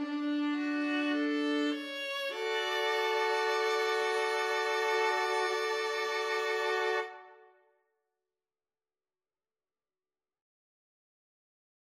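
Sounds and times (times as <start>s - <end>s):
violin and viola duet: 0.0s - 7.5s.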